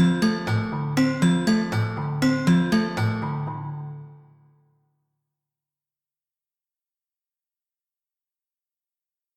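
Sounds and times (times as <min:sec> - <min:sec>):
gamelan music from Bali and Java in Indonesia: 0:00.0 - 0:04.4.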